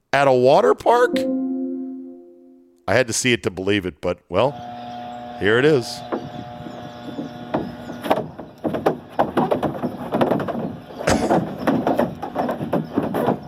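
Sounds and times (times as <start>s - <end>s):
speech: 0.1s - 1.4s, 2.9s - 4.8s, 5.4s - 6.2s
cow's hooves clattering along a dry water slide: 7.2s - 13.4s.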